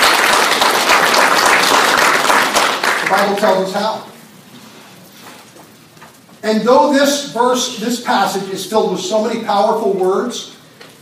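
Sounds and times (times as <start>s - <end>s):
crowd applauding: 0.0s - 3.7s
speech: 3.1s - 4.1s, 6.4s - 10.6s.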